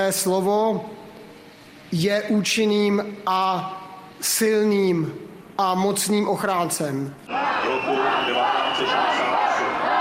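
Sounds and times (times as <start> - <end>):
speech: 0.0 - 1.1, 1.9 - 9.2
large crowd whistling: 7.3 - 10.0.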